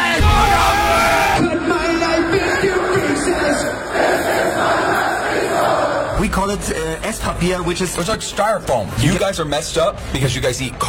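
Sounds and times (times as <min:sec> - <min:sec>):
large festival crowd shouting and cheering: 0:00.0 - 0:06.6
speech: 0:06.5 - 0:10.8.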